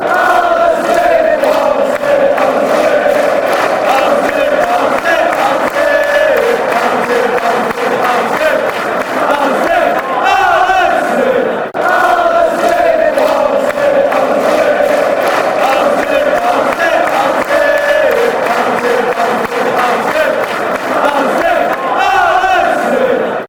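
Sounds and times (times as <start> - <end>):
fans chanting: 0.0 - 23.4.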